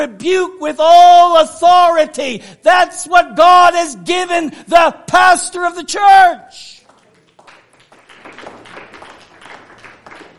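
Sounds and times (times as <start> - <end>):
speech: 0.0 - 6.8
scattered uneven crowd clapping: 6.8 - 10.3.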